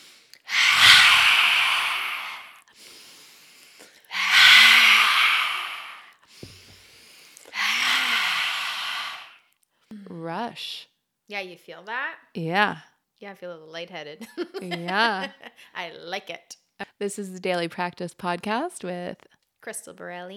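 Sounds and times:
lion's breath yoga breathing exercise exhalations: 0.0 - 9.4
quiet inhalations: 0.0 - 10.0
speech: 10.6 - 20.3.

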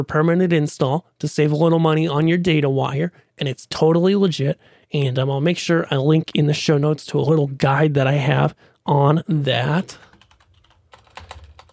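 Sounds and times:
speech: 0.0 - 10.1
soft typing on a computer keyboard: 10.1 - 11.7.

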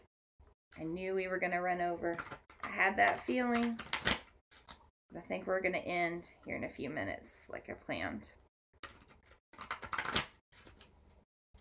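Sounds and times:
speech: 0.8 - 4.1, 5.1 - 8.4
tarot cards being shuffled: 2.2 - 4.8, 8.8 - 10.9.

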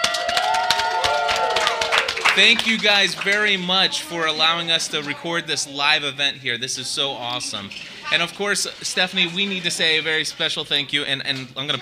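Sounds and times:
live audience round of applause: 0.0 - 3.7
speech: 2.4 - 11.8.

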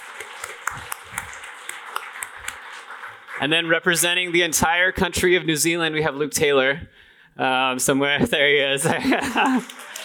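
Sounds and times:
audience applause: 0.0 - 4.4, 9.1 - 10.0
speech: 3.4 - 9.8
laughter: 8.8 - 10.0.

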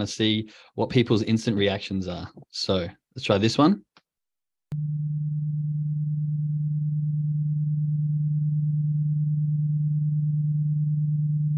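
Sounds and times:
speech: 0.0 - 3.9
low-pitched hearing test tone: 4.7 - 11.5.

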